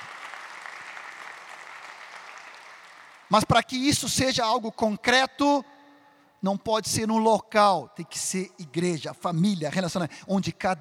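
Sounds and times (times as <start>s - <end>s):
audience applauding: 0.0s - 3.3s
speech: 3.3s - 5.7s, 6.4s - 10.7s.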